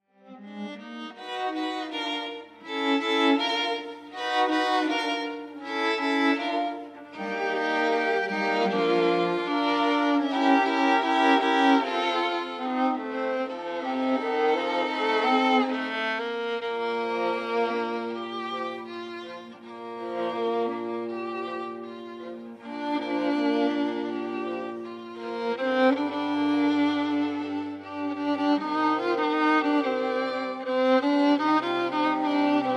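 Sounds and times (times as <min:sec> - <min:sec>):
strings: 0:00.0 - 0:32.7.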